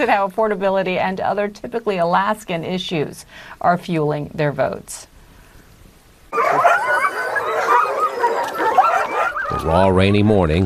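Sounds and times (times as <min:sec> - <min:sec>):
speech: 0:00.0 - 0:05.1, 0:06.3 - 0:06.7, 0:09.6 - 0:10.6
pack of sled dogs barking, yipping and whining: 0:06.3 - 0:10.2.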